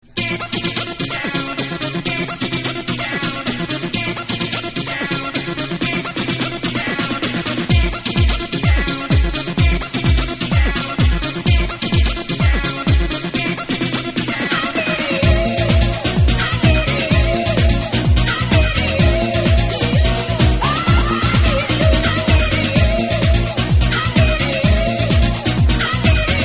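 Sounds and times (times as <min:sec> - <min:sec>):
techno music: 0:00.1 - 0:26.4.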